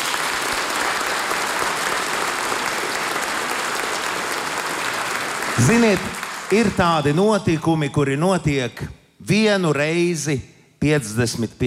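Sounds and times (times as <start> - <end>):
audience applause: 0.0 - 7.4
speech: 5.6 - 11.6.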